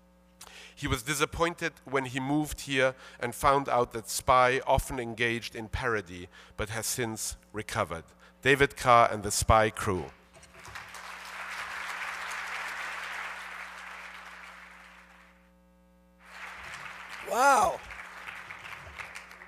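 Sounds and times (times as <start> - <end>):
speech: 0.8 - 10.2
crowd clapping: 10.5 - 15.4, 16.2 - 19.4
person exclaiming: 17.3 - 17.8.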